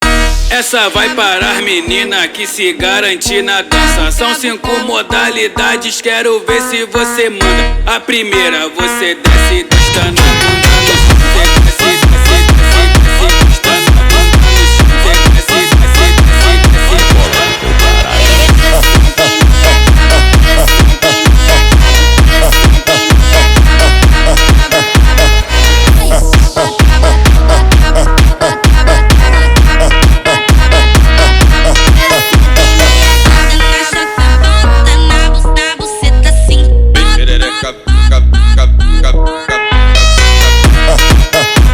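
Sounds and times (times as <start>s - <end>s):
Brazilian phonk music: 0.0s - 41.7s.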